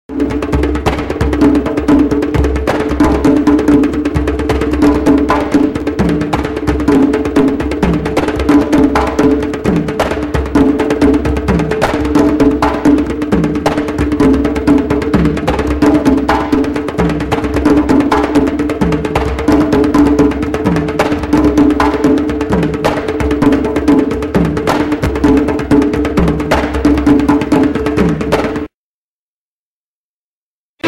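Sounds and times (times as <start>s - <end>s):
African percussion trio: 0.1s - 28.7s.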